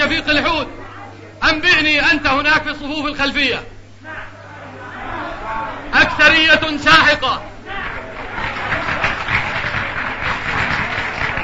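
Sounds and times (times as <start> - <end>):
speech: 0.1 - 4.3, 5.9 - 7.5
assembly applauding after a vote: 7.7 - 11.4.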